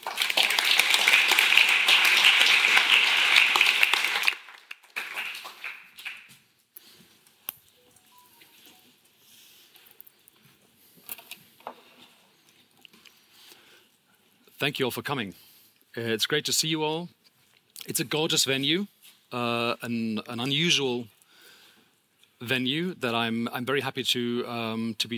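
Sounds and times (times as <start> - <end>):
audience applause: 0.0 - 6.4
speech: 14.6 - 17.2, 17.8 - 21.2, 22.4 - 25.1.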